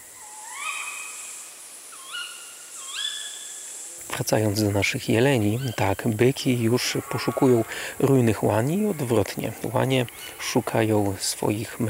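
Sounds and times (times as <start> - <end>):
male tawny owls hooting: 0.0 - 3.7, 6.7 - 8.0
female tawny owls squealing: 0.2 - 1.2, 1.9 - 3.4, 6.8 - 7.9
speech: 4.2 - 11.8.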